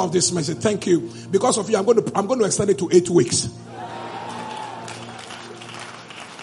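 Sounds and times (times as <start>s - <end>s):
speech: 0.0s - 3.7s
clapping: 4.3s - 6.4s.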